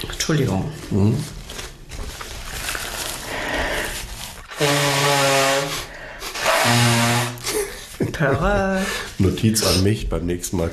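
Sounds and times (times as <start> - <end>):
speech: 0.0 - 1.4, 8.2 - 10.7
rustling: 0.0 - 6.6
nose blowing: 3.3 - 7.9.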